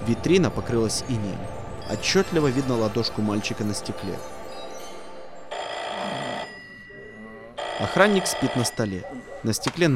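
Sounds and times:
speech: 0.1 - 4.4, 7.8 - 9.9
telephone ringing: 5.5 - 8.9.

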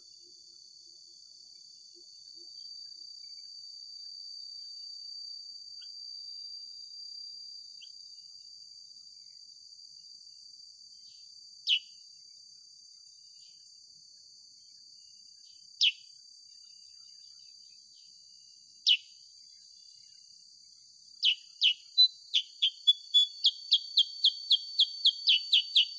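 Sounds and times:
sooty-headed bulbul song of sharp downslurred chirps: 11.7 - 11.9, 18.9 - 19.1, 21.2 - 25.9.

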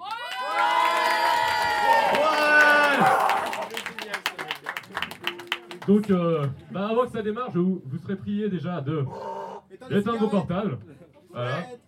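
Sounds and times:
audience at a live rock show cheering, whooping and clapping: 0.0 - 6.1
speech: 5.9 - 11.8.

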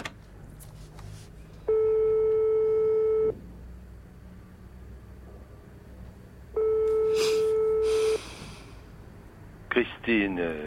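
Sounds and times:
telephone ringback tone: 1.7 - 3.3, 6.6 - 8.2
speech: 10.1 - 10.6.

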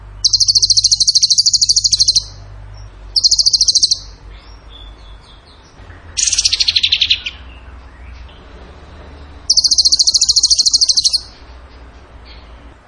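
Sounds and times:
bird trilling: 0.2 - 2.4, 3.2 - 5.4, 6.2 - 7.6, 9.4 - 11.4
thin whistles: 0.2 - 2.4, 3.2 - 4.1, 9.5 - 11.4.

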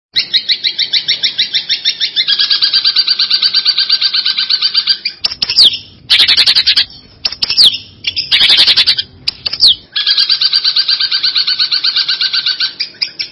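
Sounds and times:
long-tailed shrike singing with buzzy chattering: 0.2 - 13.2.

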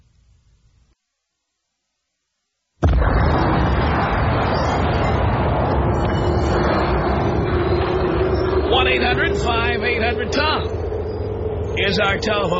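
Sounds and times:
explosion sound effect with roaring rumble: 2.8 - 12.5
speech: 11.9 - 12.5.

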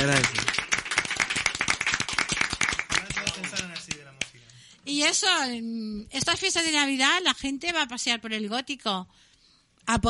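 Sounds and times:
speech: 0.0 - 0.4, 5.1 - 9.3, 9.9 - 10.0
clapping: 0.0 - 4.4.

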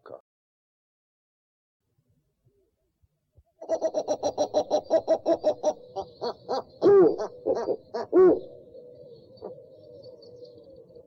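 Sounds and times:
owl calling with low pulses and high sliding whistles: 3.6 - 11.0.

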